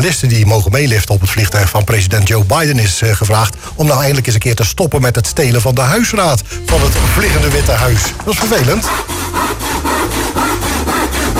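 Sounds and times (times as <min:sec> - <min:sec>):
speech: 0:00.0 - 0:09.2
saw cutting a piece off a wooden chair: 0:06.7 - 0:11.3.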